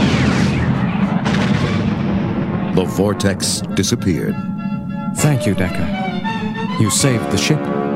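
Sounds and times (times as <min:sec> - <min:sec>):
sci-fi photon torpedoes firing: 0:00.0 - 0:02.8
asteroid exploding in crackling blast: 0:00.0 - 0:02.9
speech: 0:02.9 - 0:04.6, 0:05.2 - 0:06.0, 0:06.8 - 0:07.8.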